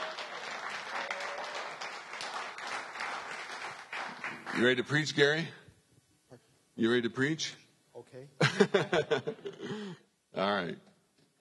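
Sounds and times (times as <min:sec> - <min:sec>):
faint audience applause welcoming a guest: 0:00.0 - 0:05.0
speech: 0:04.6 - 0:05.6, 0:06.8 - 0:07.6, 0:08.2 - 0:10.9
laughter: 0:08.4 - 0:09.8.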